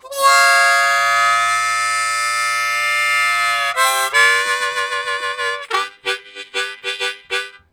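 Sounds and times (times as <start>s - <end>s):
train-style harmonica riffs: 0.0s - 7.7s.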